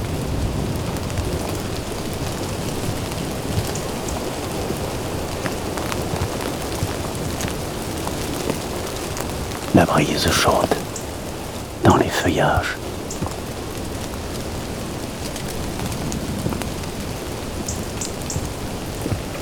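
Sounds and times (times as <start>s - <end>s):
light steady rain at a rangers' cabin as a storm eases: 0.0s - 19.4s
speech: 9.8s - 10.9s, 12.2s - 12.9s.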